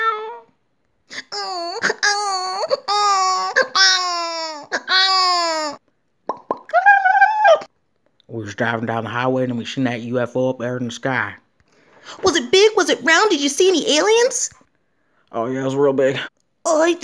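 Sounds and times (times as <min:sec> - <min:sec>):
cat yowling: 0:00.0 - 0:00.5, 0:01.1 - 0:05.8, 0:06.7 - 0:07.7
speech: 0:08.6 - 0:11.4, 0:12.9 - 0:14.6, 0:15.3 - 0:17.0.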